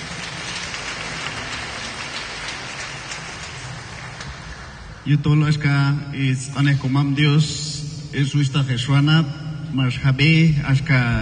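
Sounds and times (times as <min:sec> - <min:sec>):
audience applause: 0:00.0 - 0:04.8
speech: 0:05.0 - 0:11.2.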